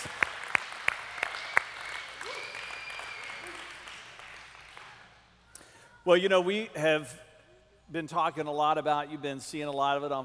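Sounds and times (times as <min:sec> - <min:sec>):
audience applauding and cheering for children: 0:00.0 - 0:05.3
speech: 0:06.1 - 0:07.2, 0:07.9 - 0:10.2.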